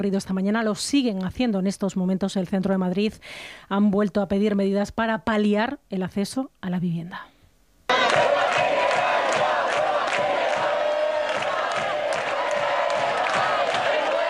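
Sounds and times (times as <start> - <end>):
speech: 0.0 - 7.3
large crowd of protesters shouting slogans in unison: 7.9 - 14.2.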